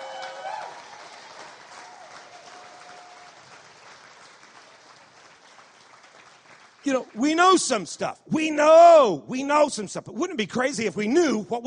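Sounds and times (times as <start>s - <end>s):
audience clapping: 0.0s - 8.0s
speech: 6.8s - 11.6s.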